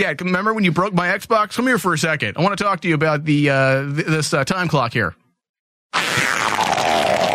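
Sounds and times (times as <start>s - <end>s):
speech: 0.0s - 5.2s
loud distorted fart: 5.9s - 7.3s.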